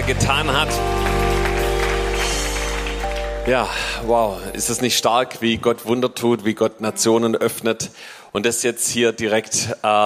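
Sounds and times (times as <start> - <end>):
audience applause: 0.0 - 4.7
speech: 0.1 - 1.2, 3.4 - 10.0.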